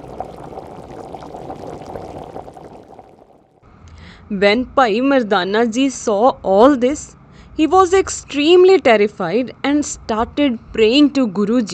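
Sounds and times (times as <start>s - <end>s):
oil heating and bubbling in a large pot or cauldron: 0.0s - 3.6s
speech: 4.3s - 11.7s.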